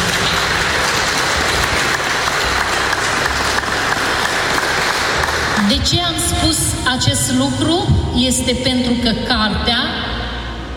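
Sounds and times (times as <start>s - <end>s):
audience applause: 0.0s - 5.8s
speech: 5.7s - 10.1s.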